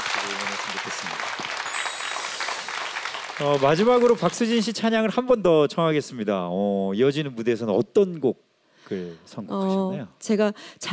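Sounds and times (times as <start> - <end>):
audience applause: 0.0 - 4.7
speech: 0.8 - 1.4, 3.4 - 10.9.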